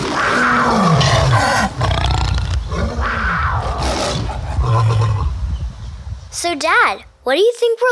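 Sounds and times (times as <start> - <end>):
lion roaring: 0.0 - 5.4
speech: 6.5 - 7.9.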